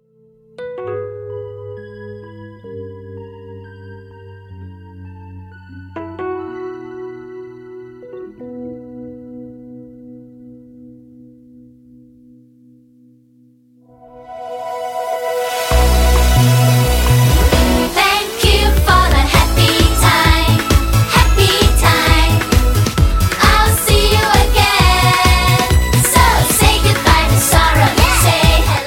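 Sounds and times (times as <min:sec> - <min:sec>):
karaoke backing track: 0:15.2 - 0:28.8.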